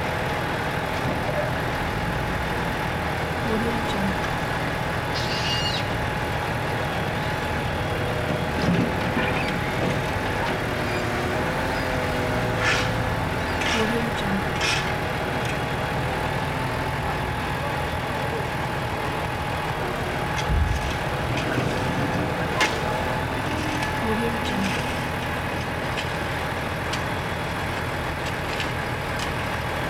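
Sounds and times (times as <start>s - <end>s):
construction site truck engine: 0.0s - 29.8s
machine shoveling and digging at construction site: 12.6s - 13.0s.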